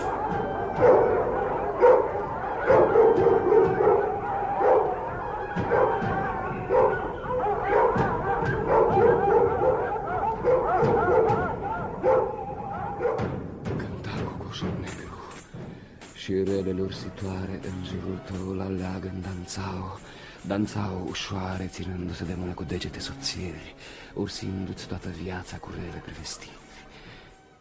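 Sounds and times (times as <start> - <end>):
dogs barking and yipping with whimpers and howls: 0.0 - 13.6
speech: 16.9 - 26.6.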